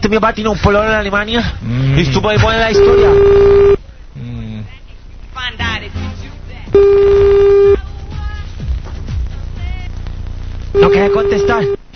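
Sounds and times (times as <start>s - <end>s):
speech: 0.0s - 4.4s, 10.8s - 11.8s
telephone busy signal tones: 2.7s - 3.8s, 6.8s - 7.8s, 10.8s - 11.8s.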